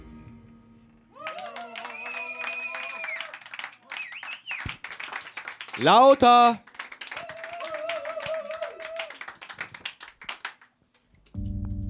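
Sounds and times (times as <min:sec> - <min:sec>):
audience applause: 0:01.1 - 0:10.7
speech: 0:05.8 - 0:06.7.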